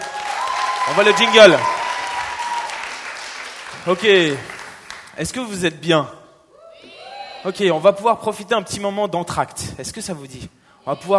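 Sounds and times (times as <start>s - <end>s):
audience applause: 0.0s - 5.2s
speech: 0.9s - 1.8s, 3.8s - 4.5s, 5.2s - 6.2s, 7.4s - 11.1s.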